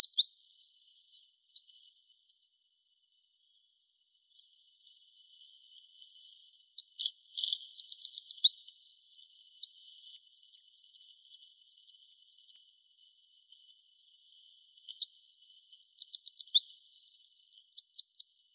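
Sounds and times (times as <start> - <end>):
Eurasian wren song: 0.0 - 1.7, 6.5 - 9.8, 14.8 - 18.4.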